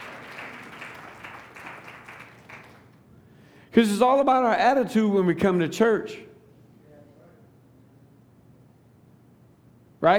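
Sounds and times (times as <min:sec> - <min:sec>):
audience applause for volunteers: 0:00.0 - 0:03.0
speech: 0:03.7 - 0:06.3.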